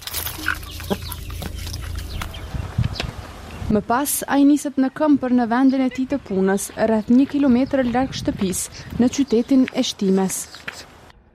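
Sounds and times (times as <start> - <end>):
outdoor noise: 0.0 - 11.3
chickens clucking while being fed in a home garden: 0.1 - 3.6
speech: 0.4 - 1.0, 3.7 - 10.9.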